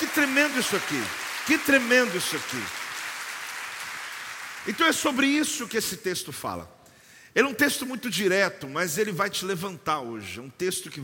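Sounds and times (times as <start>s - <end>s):
audience applause: 0.0s - 5.2s
speech: 0.2s - 2.8s, 4.6s - 6.8s, 7.4s - 11.0s.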